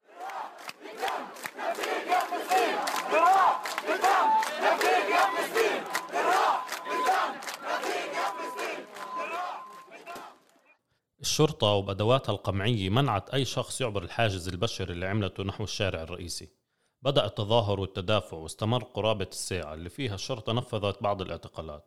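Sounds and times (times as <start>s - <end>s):
protest crowd chanting slogans: 0.0s - 10.7s
speech: 11.4s - 21.8s.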